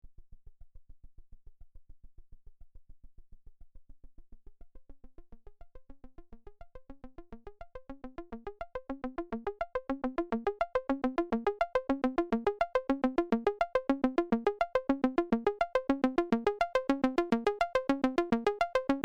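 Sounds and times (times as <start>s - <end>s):
spring saw synth arpeggio: 9.2s - 19.0s.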